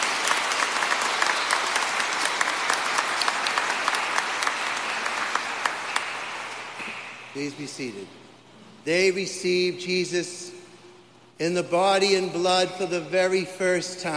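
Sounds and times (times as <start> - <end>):
audience applauding first communion children: 0.0 - 7.3
speech: 7.4 - 8.2, 8.8 - 10.6, 11.4 - 14.1.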